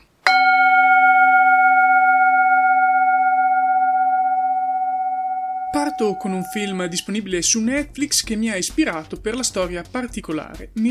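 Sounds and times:
spoiler gong sound effect: 0.3s - 7.5s
speech: 6.0s - 10.8s.

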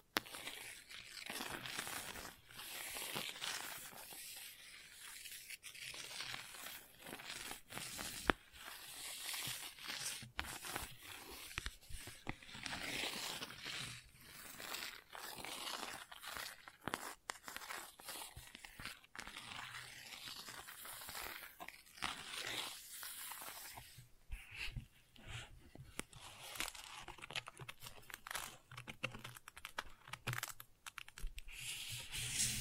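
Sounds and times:
gentle crackly scratching: 0.2s - 32.5s.

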